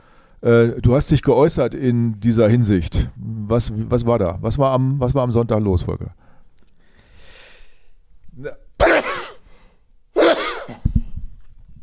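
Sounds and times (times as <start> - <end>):
speech: 0.4 - 6.2, 8.4 - 8.6
quick inhale: 6.2 - 8.0
sneezing into the microphone: 8.5 - 9.5, 10.2 - 11.0.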